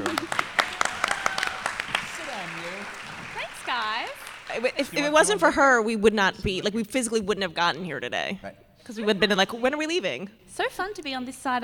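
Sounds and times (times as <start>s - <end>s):
round of applause: 0.0s - 5.4s
laughter: 0.0s - 5.7s
speech: 4.6s - 11.6s.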